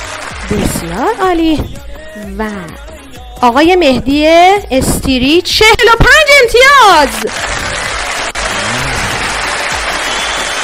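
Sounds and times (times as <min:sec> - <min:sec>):
audience applause: 0:00.0 - 0:01.0, 0:07.1 - 0:10.6
speech: 0:00.5 - 0:07.7.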